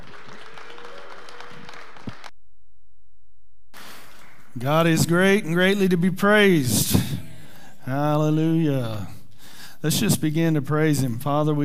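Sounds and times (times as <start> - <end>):
church congregation applauding as a pastor comes up to speak: 0.0 - 2.3, 3.8 - 5.1
speech: 4.6 - 7.0, 7.9 - 9.2, 9.8 - 11.6.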